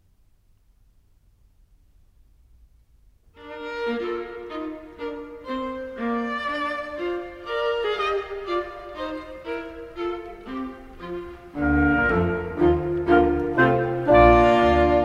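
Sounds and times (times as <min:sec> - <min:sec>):
septet of strings and winds: 0:03.4 - 0:15.0.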